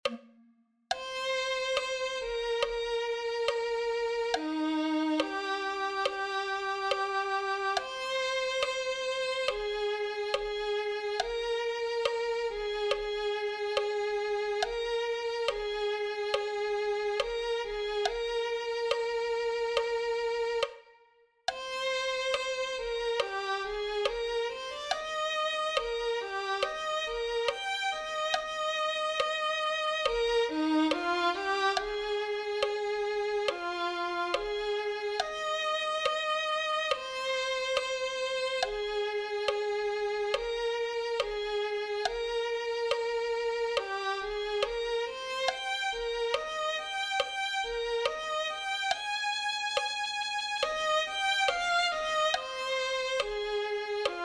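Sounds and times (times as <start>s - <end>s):
violin: 0.0s - 54.2s.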